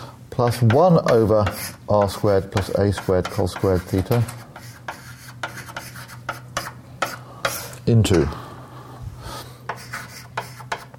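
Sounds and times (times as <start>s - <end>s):
speech: 0.4s - 4.4s, 7.9s - 8.4s
writing scratching on a board during a mathematics lecture: 0.5s - 7.8s, 9.7s - 10.9s.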